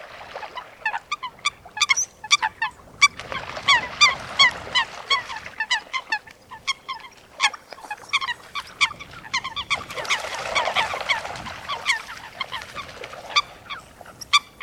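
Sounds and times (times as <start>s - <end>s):
coot calling: 0.8s - 14.6s.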